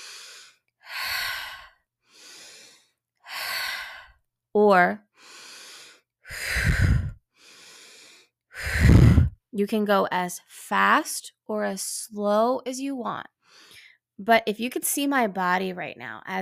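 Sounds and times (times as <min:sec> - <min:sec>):
breathing in through the nose and out through the mouth: 0:00.0 - 0:04.3, 0:05.0 - 0:09.4, 0:13.4 - 0:14.1
speech: 0:04.5 - 0:05.1, 0:09.6 - 0:13.4, 0:14.2 - 0:16.4.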